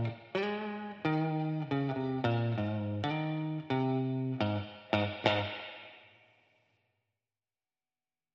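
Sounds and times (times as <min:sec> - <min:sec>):
clean electric guitar: 0:00.0 - 0:06.0.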